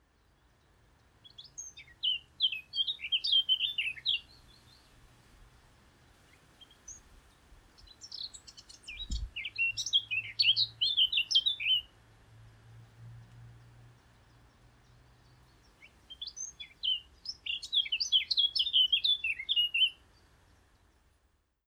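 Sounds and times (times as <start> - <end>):
Eurasian blackcap singing: 1.1 - 4.9, 7.7 - 11.9, 15.2 - 20.0.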